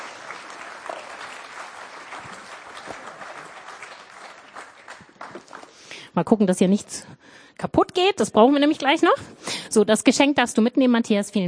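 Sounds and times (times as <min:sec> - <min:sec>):
audience applause: 0:00.0 - 0:05.8
speech: 0:06.2 - 0:11.4.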